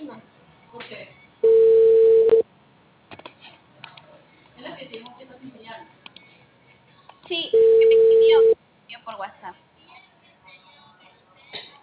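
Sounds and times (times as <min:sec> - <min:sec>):
telephone tone while placing a call: 0:01.4 - 0:02.4, 0:07.6 - 0:08.6.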